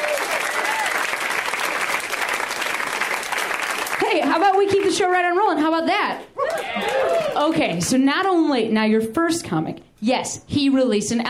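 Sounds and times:
audience applause at a live comedy show: 0.0 - 4.8, 6.4 - 7.6
speech: 4.4 - 6.3, 6.9 - 11.2.

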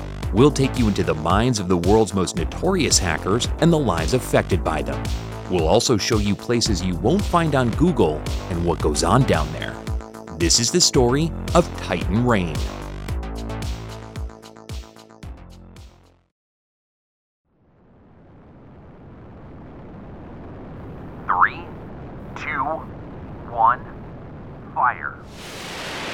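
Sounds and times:
speech: 0.3 - 12.8
MTCR-class missile launch blast from Transporter Erector Launcher: 18.4 - 26.1.

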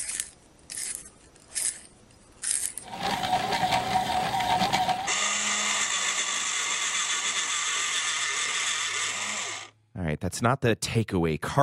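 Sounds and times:
pencil sharpeners being cranked: 2.4 - 9.7
high-pitched mechanical whir of a pencil sharpener: 2.8 - 9.7
speech: 10.3 - 11.6.

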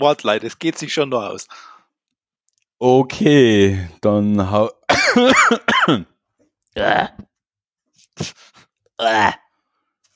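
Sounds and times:
speech: 0.0 - 1.7, 2.8 - 6.1, 6.8 - 7.3, 8.2 - 9.4
person coughing and clearing throat after choking: 4.9 - 6.1.

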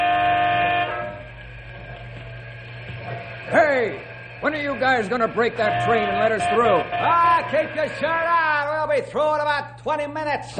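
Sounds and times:
truck air horn blast: 0.0 - 1.4, 5.5 - 8.0
speech: 3.5 - 10.5.

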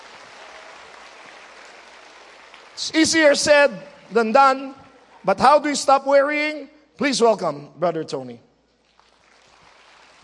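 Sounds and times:
audience clapping hands: 0.0 - 3.4, 8.8 - 10.2
speech: 2.8 - 8.5.

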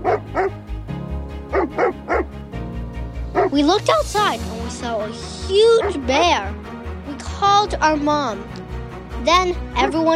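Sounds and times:
dog barking: 0.0 - 0.6, 1.5 - 2.3, 3.3 - 3.6, 5.7 - 6.1
speech: 3.6 - 6.6, 7.4 - 8.6, 9.2 - 10.1.

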